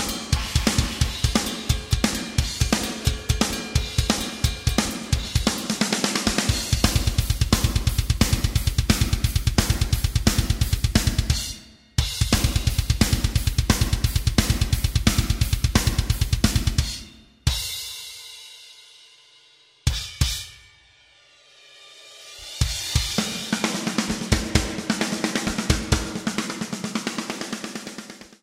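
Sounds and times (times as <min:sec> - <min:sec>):
snare drum: 0:00.0 - 0:17.7, 0:22.6 - 0:28.4
drum kit: 0:00.0 - 0:20.9, 0:21.9 - 0:28.4
kick drum: 0:06.6 - 0:17.7.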